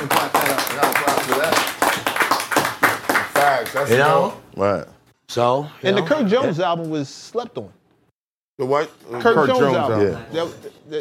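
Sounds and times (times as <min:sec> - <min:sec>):
people clapping hands: 0:00.0 - 0:04.3
speech: 0:03.8 - 0:07.8, 0:08.6 - 0:10.9.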